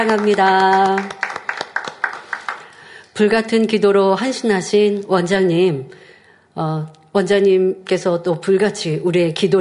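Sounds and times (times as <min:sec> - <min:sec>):
speech: 0:00.0 - 0:01.2, 0:03.2 - 0:06.0, 0:06.6 - 0:09.5
audience applause: 0:00.0 - 0:02.8.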